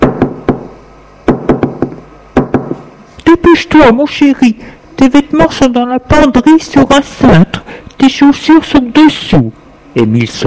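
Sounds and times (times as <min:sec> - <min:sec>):
knocking on a door: 0:00.0 - 0:00.7, 0:01.3 - 0:02.8
speech: 0:03.3 - 0:10.4.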